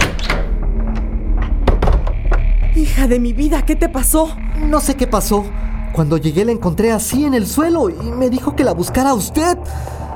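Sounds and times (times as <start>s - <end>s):
house door thunks and rattles as it is opened: 0.0s - 2.5s
speech: 3.0s - 10.0s.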